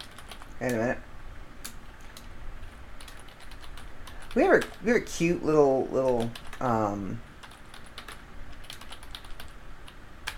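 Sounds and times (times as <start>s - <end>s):
typing on a computer keyboard to look something up: 0.0s - 0.8s, 3.0s - 4.9s, 6.0s - 6.7s, 7.4s - 10.3s
low hiss: 0.0s - 10.3s
speech: 0.6s - 1.1s, 4.4s - 7.3s.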